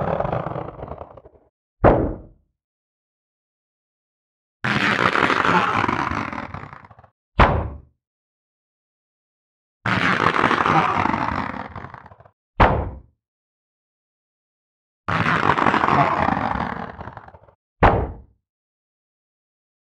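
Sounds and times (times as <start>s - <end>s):
cartoon rubber catapult: 0.0s - 2.4s, 4.6s - 7.9s, 9.9s - 13.1s, 15.1s - 18.3s.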